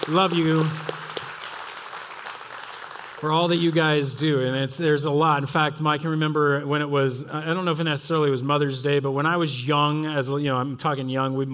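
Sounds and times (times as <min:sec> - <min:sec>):
audience clapping and cheering: 0:00.0 - 0:04.2
speech: 0:00.1 - 0:00.9, 0:03.2 - 0:11.5.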